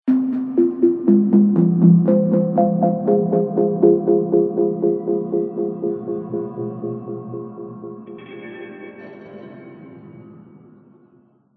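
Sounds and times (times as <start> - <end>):
cave music: 0.1 - 9.7.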